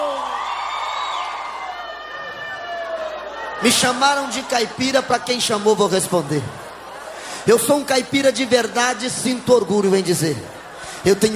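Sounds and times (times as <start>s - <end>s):
audience shouting and cheering: 0.0s - 11.3s
speech: 3.6s - 6.6s, 7.4s - 11.3s
laughter: 4.1s - 11.3s.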